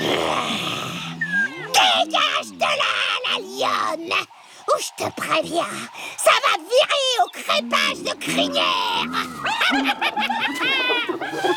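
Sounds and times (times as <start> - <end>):
hyenas calling with cackling giggles, whoops and yelps: 0.0 - 11.5
speech: 3.6 - 11.5.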